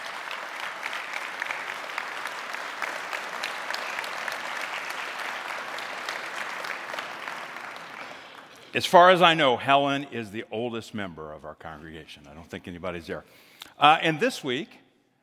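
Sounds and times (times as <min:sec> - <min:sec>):
congregation applauding to welcome a 102-year-old member: 0:00.0 - 0:09.4
speech: 0:08.7 - 0:14.8.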